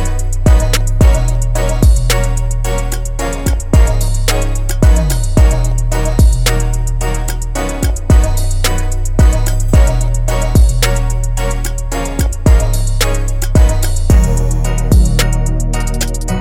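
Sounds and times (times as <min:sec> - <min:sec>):
trap soul guitar music: 0:00.0 - 0:16.3.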